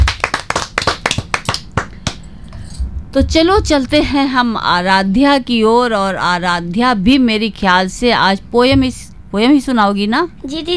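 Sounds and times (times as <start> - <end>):
group of children clapping hands: 0.0 - 2.2
speech: 3.1 - 10.7.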